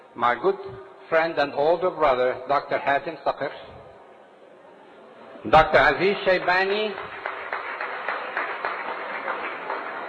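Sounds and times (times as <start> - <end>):
speech: 0.2 - 3.8, 5.4 - 7.1
audience applauding: 5.8 - 10.0.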